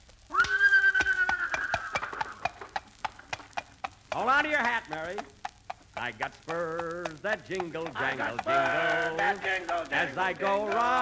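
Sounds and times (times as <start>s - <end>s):
buggy horse whinnying: 0.3s - 2.6s
horse pulling a buggy clip-clop hoofbeats: 0.4s - 10.9s
speech: 4.2s - 5.4s, 6.0s - 10.9s.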